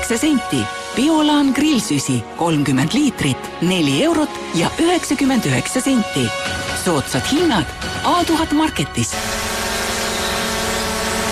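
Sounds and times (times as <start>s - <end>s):
speech: 0.1s - 9.4s
drone propellers buzzing: 9.0s - 11.3s.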